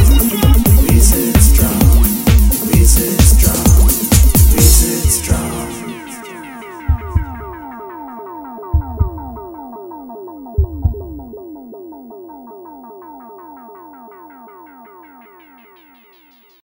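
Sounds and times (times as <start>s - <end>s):
drum: 0.0s - 5.5s, 6.8s - 7.7s, 8.8s - 9.5s, 10.6s - 11.3s.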